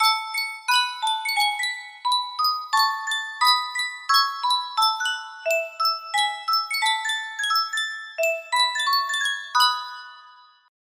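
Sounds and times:
Sankyo miniature music box melody: 0:00.0 - 0:10.7.

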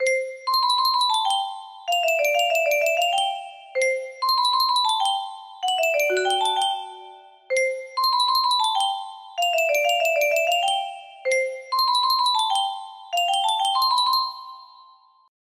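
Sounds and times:
music box: 0:00.0 - 0:15.3.

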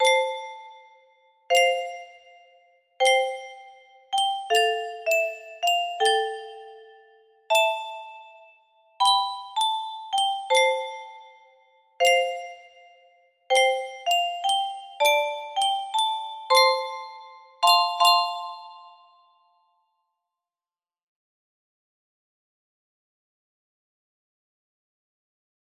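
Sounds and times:
music box melody: 0:00.0 - 0:19.7.

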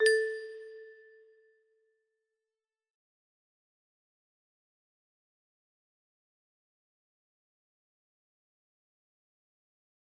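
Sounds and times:
music box: 0:00.0 - 0:01.3.

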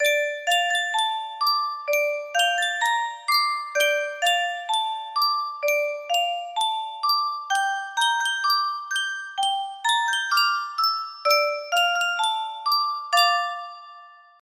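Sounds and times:
Yunsheng music box melody: 0:00.0 - 0:14.4.

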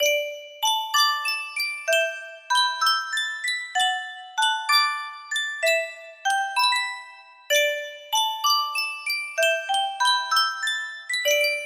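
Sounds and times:
music box melody: 0:00.0 - 0:11.6.

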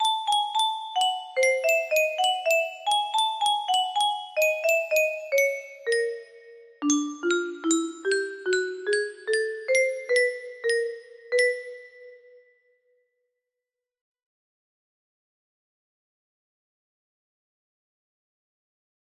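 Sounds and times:
melody: 0:00.0 - 0:12.4.

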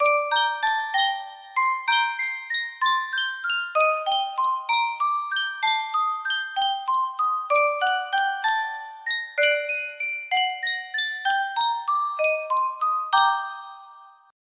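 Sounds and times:
Sankyo music box: 0:00.0 - 0:14.4.

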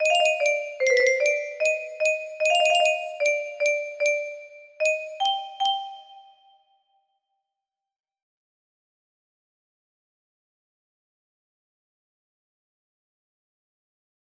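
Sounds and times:
music box: 0:00.0 - 0:06.7.

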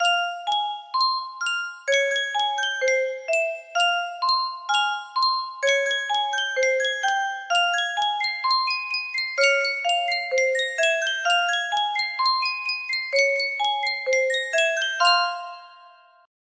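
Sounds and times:
Yunsheng music box melody: 0:00.0 - 0:16.3.

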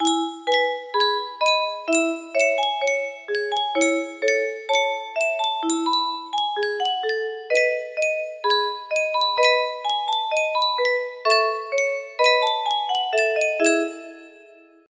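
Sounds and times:
music box: 0:00.0 - 0:14.9.

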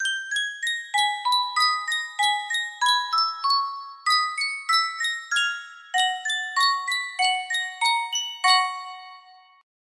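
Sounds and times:
Sankyo miniature music box melody: 0:00.0 - 0:09.6.

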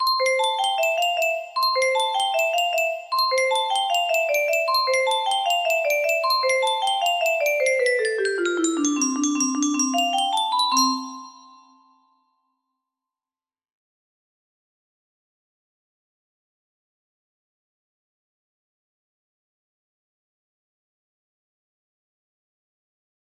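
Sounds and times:
music box: 0:00.0 - 0:12.1.

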